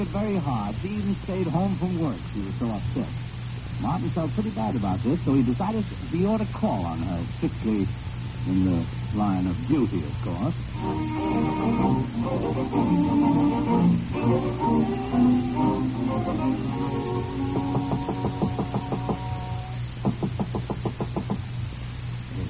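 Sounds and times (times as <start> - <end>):
speech: 0.0 - 18.0
rapping knock on a door: 17.7 - 19.3, 20.0 - 21.4.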